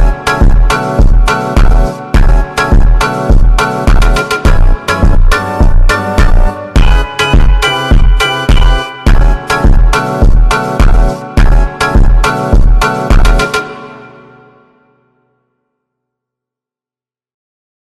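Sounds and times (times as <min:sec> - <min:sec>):
slowed Brazilian funk remix: 0:00.0 - 0:13.8.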